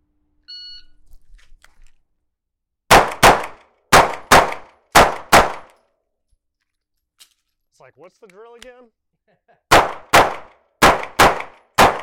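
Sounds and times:
electronic shot timer beep: 0:00.5 - 0:01.0
gunshots: 0:02.9 - 0:05.7, 0:09.7 - 0:12.0
speech: 0:07.8 - 0:10.5.

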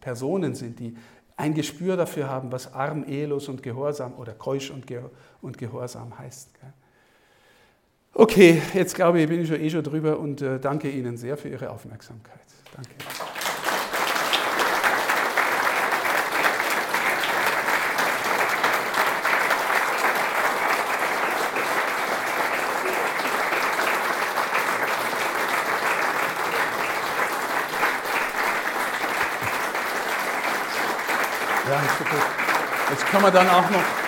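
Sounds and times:
speech: 0:00.0 - 0:06.8, 0:08.1 - 0:13.2, 0:32.9 - 0:34.0
audience clapping after talk: 0:12.6 - 0:34.0.

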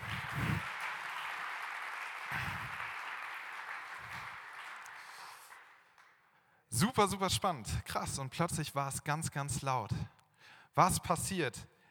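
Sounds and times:
audience applause: 0:00.0 - 0:06.2
speech: 0:06.8 - 0:10.1, 0:10.8 - 0:11.7.

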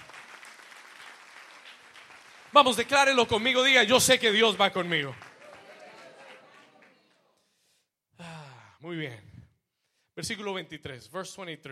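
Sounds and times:
audience applause: 0:00.0 - 0:07.2
speech: 0:02.5 - 0:05.3, 0:10.2 - 0:11.7.

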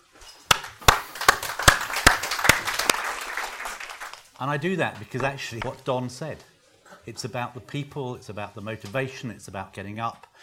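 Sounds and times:
crowd applause: 0:00.0 - 0:05.8
speech: 0:04.4 - 0:06.5, 0:07.1 - 0:10.4.

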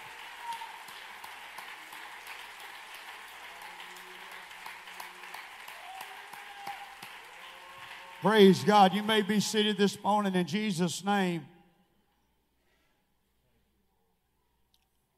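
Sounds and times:
audience clapping hands: 0:00.0 - 0:11.3
speech: 0:08.2 - 0:11.5.

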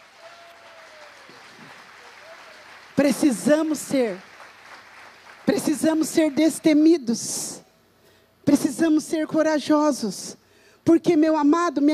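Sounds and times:
audience clapping: 0:00.0 - 0:06.8
speech: 0:03.0 - 0:04.3, 0:05.5 - 0:07.6, 0:08.5 - 0:11.9.

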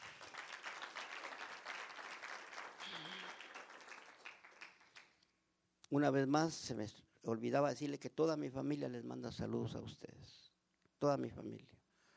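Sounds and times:
audience applauding: 0:00.0 - 0:05.2
speech: 0:05.9 - 0:11.8.

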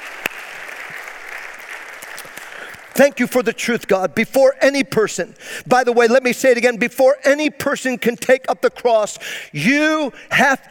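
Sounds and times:
audience applause: 0:00.0 - 0:03.0
speech: 0:03.0 - 0:10.6.

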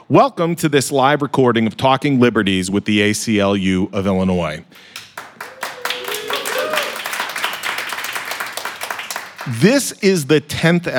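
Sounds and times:
speech: 0:00.1 - 0:05.0, 0:09.5 - 0:10.9
live audience applauding: 0:04.8 - 0:09.8.

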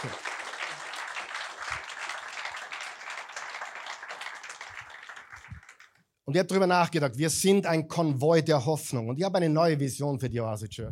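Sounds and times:
speech: 0:00.0 - 0:00.3, 0:06.3 - 0:10.9
audience applause: 0:00.0 - 0:06.0.

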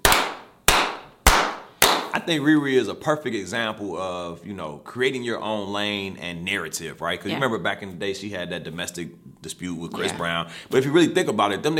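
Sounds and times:
slow clap: 0:00.0 - 0:02.3
speech: 0:02.2 - 0:11.7.

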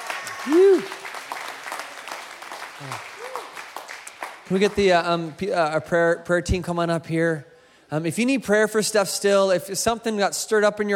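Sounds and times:
audience clapping: 0:00.0 - 0:05.7
speech: 0:00.4 - 0:01.0, 0:04.5 - 0:10.9.

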